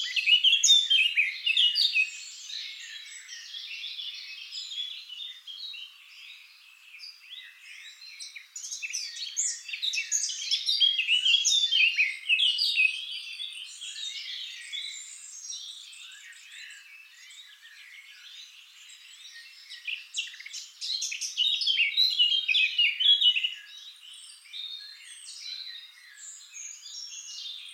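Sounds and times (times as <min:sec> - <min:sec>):
Eurasian blackcap song: 0:00.0 - 0:27.7.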